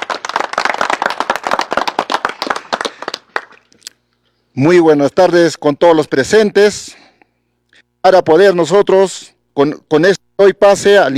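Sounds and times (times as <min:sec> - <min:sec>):
audience applause: 0:00.0 - 0:03.7
speech: 0:04.6 - 0:07.0, 0:08.0 - 0:11.1.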